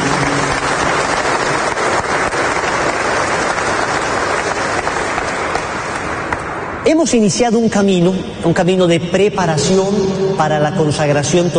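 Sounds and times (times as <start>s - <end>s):
audience applause welcoming newcomers: 0.0s - 6.5s
speech: 6.9s - 11.5s.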